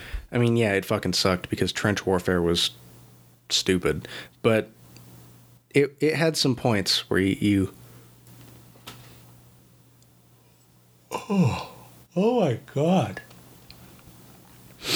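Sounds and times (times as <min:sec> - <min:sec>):
faint hum: 0:00.0 - 0:14.9
speech: 0:00.3 - 0:02.8, 0:03.5 - 0:04.8, 0:05.7 - 0:07.8, 0:11.3 - 0:13.3
person yawning: 0:11.1 - 0:11.9.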